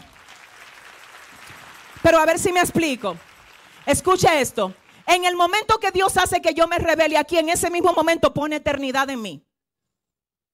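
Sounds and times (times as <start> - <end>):
audience applauding: 0.0 - 5.6
speech: 2.0 - 3.3, 3.9 - 9.5.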